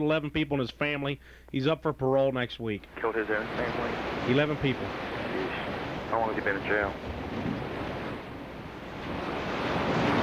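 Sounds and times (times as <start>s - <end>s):
speech: 0.0s - 7.5s
heavy rain: 3.0s - 10.2s.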